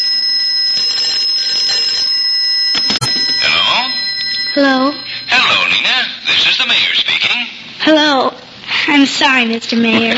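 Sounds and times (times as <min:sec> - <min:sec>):
telephone ringing: 0:00.0 - 0:06.9
speech: 0:06.4 - 0:10.1.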